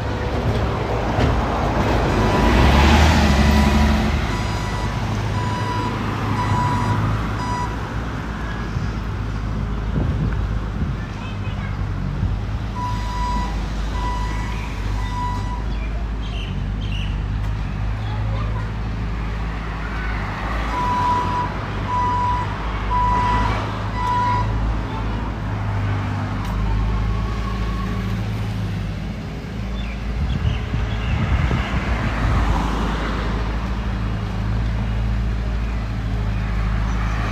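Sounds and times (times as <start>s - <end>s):
cars passing: 0.0s - 37.2s
traffic rumble in Ramat Aviv, Israel: 0.0s - 37.2s
brief beeping tone: 4.3s - 7.8s, 12.8s - 15.7s, 20.8s - 24.6s.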